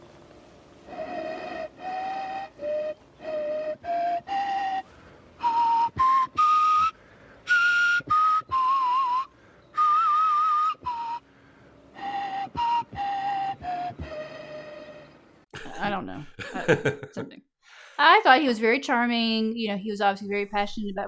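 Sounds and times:
bone flute made from a vulture's radius playing pentatonic tunes: 0:00.8 - 0:11.3, 0:11.9 - 0:15.2
laughter: 0:15.6 - 0:17.4
speech: 0:16.7 - 0:21.0.

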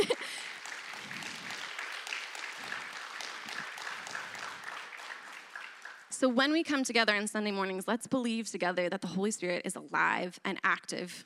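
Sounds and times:
audience round of applause: 0:00.0 - 0:06.1
speech: 0:06.2 - 0:11.2.

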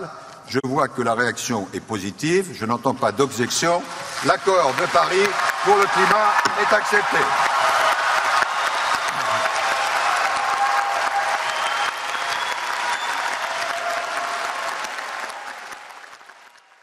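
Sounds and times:
speech: 0:00.0 - 0:07.7
enthusiastic applause from a large crowd in a conference hall: 0:04.1 - 0:16.8.

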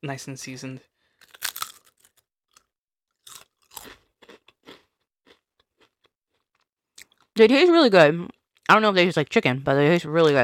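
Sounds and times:
speech: 0:00.0 - 0:00.9, 0:07.4 - 0:10.4
potato chips being chewed: 0:01.2 - 0:07.3.

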